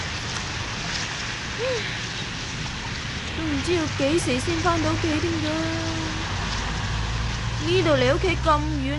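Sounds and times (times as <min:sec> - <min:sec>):
heavy rain: 0:00.0 - 0:08.9
speech: 0:01.6 - 0:02.0, 0:03.4 - 0:06.1, 0:07.6 - 0:08.9.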